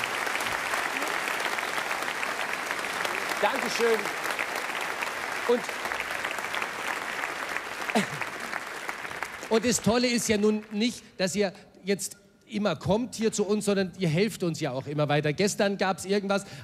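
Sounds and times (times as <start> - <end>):
audience applause: 0.0 - 10.8
speech: 3.4 - 4.2, 5.5 - 5.8, 8.0 - 8.2, 9.5 - 16.6.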